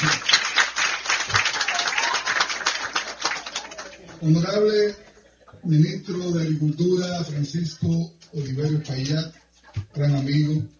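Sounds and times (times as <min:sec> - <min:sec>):
audience applause: 0:00.0 - 0:04.4
speech: 0:04.2 - 0:05.0, 0:05.6 - 0:09.4, 0:10.0 - 0:10.7.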